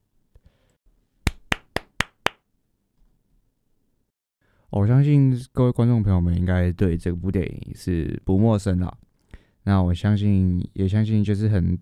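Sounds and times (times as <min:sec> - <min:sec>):
applause: 0:01.3 - 0:02.4
speech: 0:04.7 - 0:09.0, 0:09.6 - 0:11.8.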